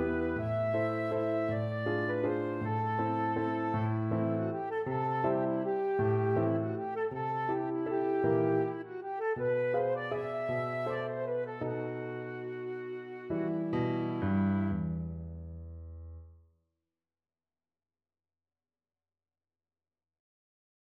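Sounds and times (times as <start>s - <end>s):
flute playing a waltz: 0.0s - 14.8s.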